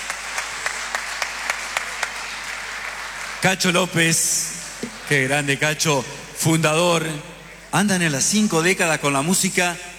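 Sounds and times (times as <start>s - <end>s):
unison clapping beat: 0.0s - 3.5s
audience applause: 0.0s - 5.6s
speech: 3.4s - 9.9s.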